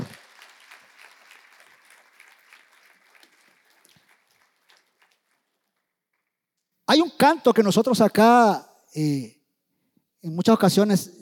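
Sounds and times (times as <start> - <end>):
audience applause: 0.0 - 5.9
speech: 6.9 - 9.4, 10.2 - 11.2.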